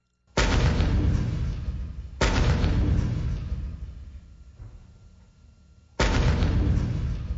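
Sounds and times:
coastal artillery guns firing: 0.4 - 4.6, 6.0 - 7.3.

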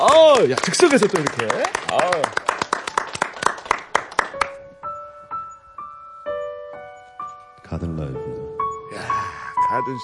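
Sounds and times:
speech: 0.0 - 2.5, 9.8 - 10.0
studio audience clapping: 0.0 - 4.6.

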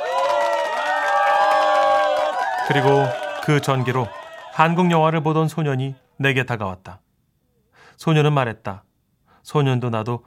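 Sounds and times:
crowd cheering with joy: 0.0 - 6.2
speech: 2.7 - 7.0, 8.0 - 10.2.

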